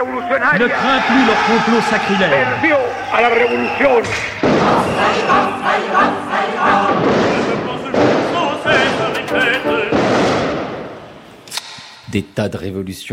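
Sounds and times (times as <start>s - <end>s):
speech: 0.0s - 7.2s, 12.1s - 13.1s
crowd of students shouting and yelling while charging in a protest: 0.0s - 10.1s.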